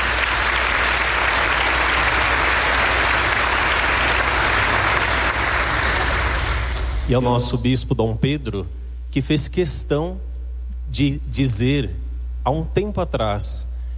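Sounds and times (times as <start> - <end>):
crowd applause: 0.0 - 7.1
speech: 7.1 - 10.3, 10.9 - 13.7.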